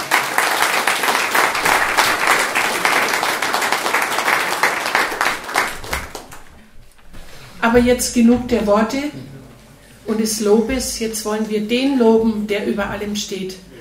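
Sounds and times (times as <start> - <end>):
audience applause: 0.0 - 7.0
speech: 7.6 - 9.3, 10.1 - 13.7.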